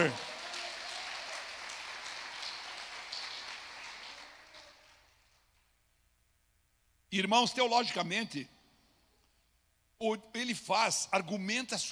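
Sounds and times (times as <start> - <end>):
audience applauding: 0.0 - 5.4
speech: 7.2 - 8.6, 10.0 - 11.8.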